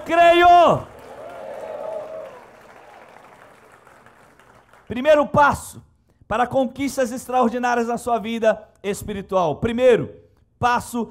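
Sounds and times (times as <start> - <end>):
audience clapping: 0.0 - 5.2
speech: 0.1 - 0.9, 4.9 - 11.0.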